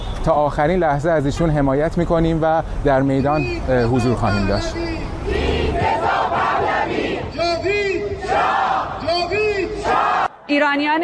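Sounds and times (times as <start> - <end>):
speech: 0.2 - 5.4, 8.4 - 11.0
crowd of Iranian protesters in Italy shouting the names of the dead: 5.2 - 7.4, 8.2 - 9.1, 9.7 - 10.5.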